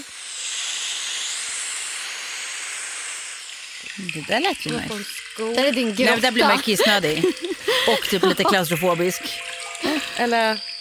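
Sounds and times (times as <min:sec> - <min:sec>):
speech: 0:03.9 - 0:10.7
beach ambience from a sleep app: 0:05.9 - 0:10.6
laughter: 0:06.0 - 0:09.0.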